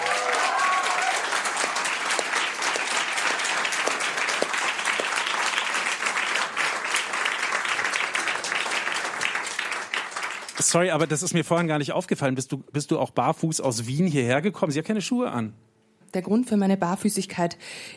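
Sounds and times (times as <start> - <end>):
audience applause: 0.0 - 11.2
speech: 10.7 - 17.9.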